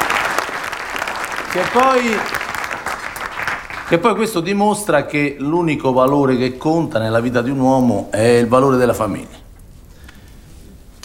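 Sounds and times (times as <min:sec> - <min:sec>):
applause: 0:00.0 - 0:04.3
speech: 0:01.5 - 0:02.4, 0:03.9 - 0:09.4.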